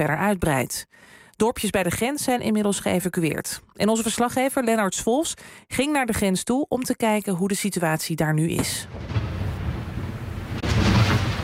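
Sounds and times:
speech: 0.0 - 9.3
booms of outgoing military fire from Israel towards Lebanon: 8.8 - 11.4.

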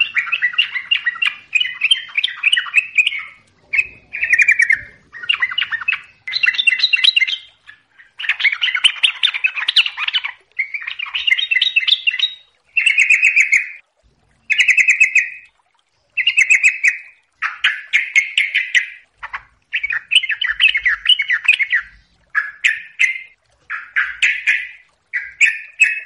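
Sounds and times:
yellow-vented bulbul song: 0.0 - 26.0.

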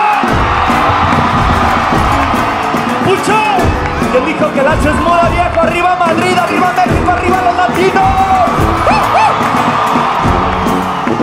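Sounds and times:
crowd giving a Mexican grito shout: 0.0 - 11.2
speech: 4.4 - 8.2.

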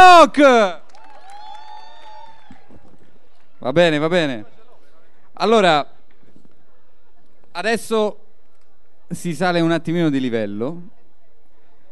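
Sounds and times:
audience cheering: 0.0 - 3.0
speech: 0.2 - 0.8, 3.6 - 4.6, 5.4 - 6.0, 7.6 - 8.2, 9.1 - 11.0
audience applause: 0.8 - 3.5.

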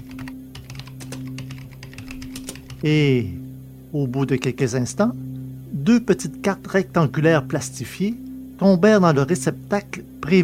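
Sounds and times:
rapid typing on a computer keyboard: 0.0 - 2.8
steady low hum: 0.0 - 10.4
speech: 2.8 - 5.2, 5.8 - 10.4.

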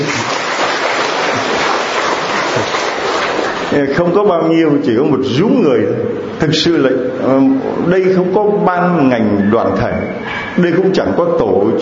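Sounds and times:
audience applause: 0.0 - 3.8
speech: 3.7 - 11.8.

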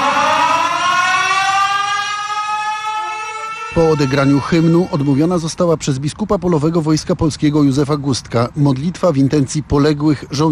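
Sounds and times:
air raid alarm siren: 0.0 - 5.7
speech: 3.8 - 10.4.

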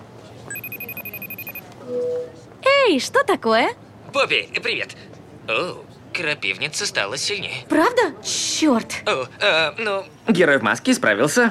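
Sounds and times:
incoming video call ringing on a phone in a mystery quest video game: 0.5 - 1.6
speech: 1.9 - 11.4.

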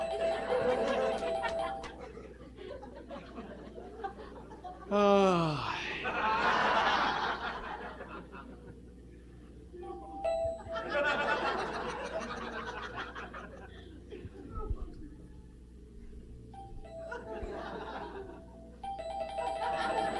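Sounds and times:
laughter: 0.2 - 8.8, 10.7 - 14.6, 17.1 - 18.6, 19.4 - 20.1
doorbell ringing: 9.9 - 11.0, 16.6 - 17.4, 18.8 - 20.1.

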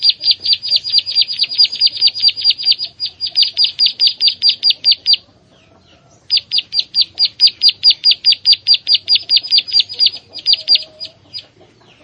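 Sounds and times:
prinia song: 0.0 - 5.3, 6.3 - 12.0.

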